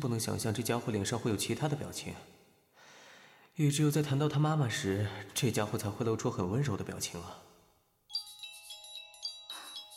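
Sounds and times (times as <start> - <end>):
speech: 0.0 - 2.4, 3.6 - 7.5
telephone ringing with an incoming call, electronic ringtone: 8.1 - 9.9.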